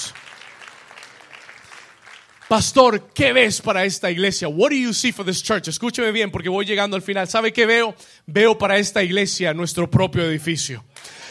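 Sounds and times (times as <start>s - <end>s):
audience applauding: 0.0s - 2.8s
speech: 2.5s - 11.2s.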